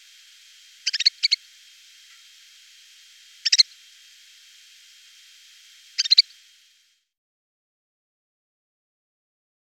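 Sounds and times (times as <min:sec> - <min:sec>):
snowfinch chirping: 0:00.0 - 0:04.1, 0:05.2 - 0:06.6.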